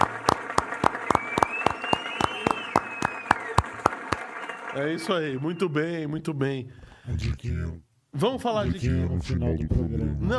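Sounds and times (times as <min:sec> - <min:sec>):
applause: 0:00.0 - 0:05.7
speech: 0:04.7 - 0:10.3.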